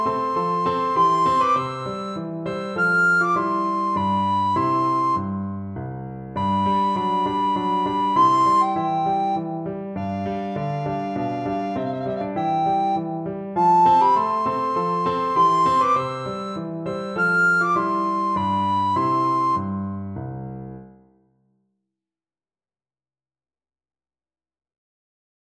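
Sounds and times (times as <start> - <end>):
recorder playing a minuet: 0.0 - 5.6, 6.4 - 20.2.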